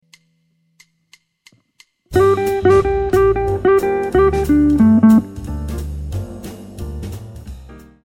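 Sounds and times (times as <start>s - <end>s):
jazz guitar lick: 2.1s - 5.9s.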